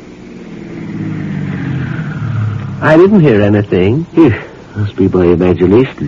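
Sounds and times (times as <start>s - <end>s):
car coming up the drive: 0.0s - 4.5s
speech: 2.8s - 6.0s.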